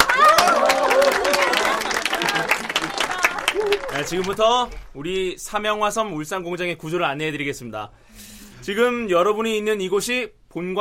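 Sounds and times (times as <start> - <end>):
voices cheering: 0.0 - 4.6
applause: 0.0 - 5.0
speech: 4.0 - 10.8.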